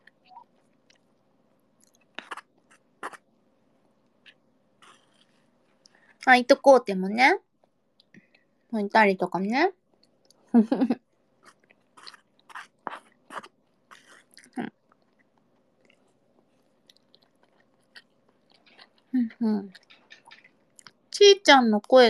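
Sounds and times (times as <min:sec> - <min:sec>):
person chewing while eating eel: 0:01.8 - 0:03.3, 0:04.1 - 0:06.0, 0:11.4 - 0:21.0
speech: 0:06.2 - 0:07.5, 0:08.7 - 0:09.8, 0:10.5 - 0:11.0, 0:19.4 - 0:19.8, 0:21.4 - 0:22.0.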